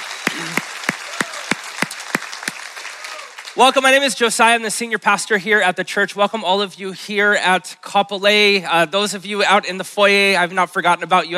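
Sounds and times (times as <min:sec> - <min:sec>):
church congregation applauding at an Easter service: 0:00.0 - 0:04.2
speech: 0:03.6 - 0:11.3.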